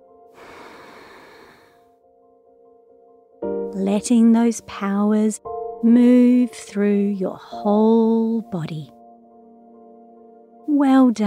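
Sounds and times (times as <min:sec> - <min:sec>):
person exhaling during a guided breathing exercise: 0:00.4 - 0:01.8
speech: 0:03.8 - 0:08.9, 0:10.8 - 0:11.2.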